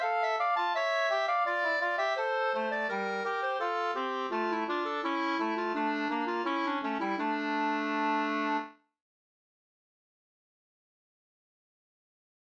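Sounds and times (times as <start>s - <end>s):
polska folk dance tune in D minor: 0.0s - 8.7s.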